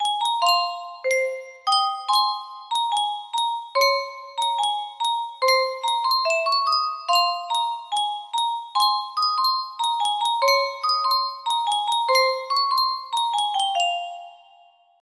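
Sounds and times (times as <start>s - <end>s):
Yunsheng custom tune music box: 0.0s - 15.0s.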